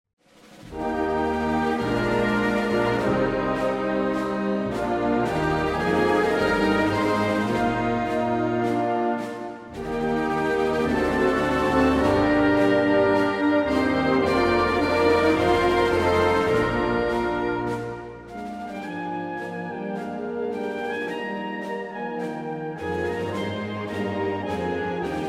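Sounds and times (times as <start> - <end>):
national anthem: 0.4 - 25.2.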